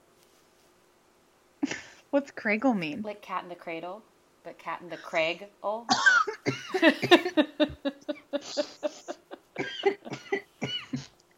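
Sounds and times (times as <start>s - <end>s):
speech: 2.1s - 8.9s
coughing after laughing hard: 5.9s - 11.1s
laughing gasps: 6.3s - 11.1s.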